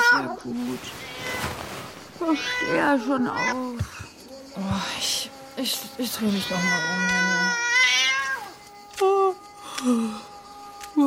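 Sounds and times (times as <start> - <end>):
cat meowing: 0.0 - 1.6, 2.2 - 3.8, 6.3 - 8.5
speech: 0.4 - 1.5, 2.2 - 8.0, 9.8 - 10.3.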